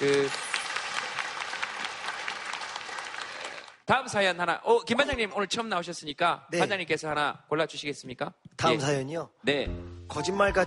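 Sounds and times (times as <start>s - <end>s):
audience applause: 0.0s - 3.9s
speech: 3.9s - 10.6s.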